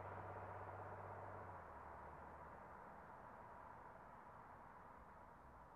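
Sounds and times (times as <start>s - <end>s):
muscle car engine ignition: 0.0s - 3.8s
muscle car driving away: 0.0s - 5.6s.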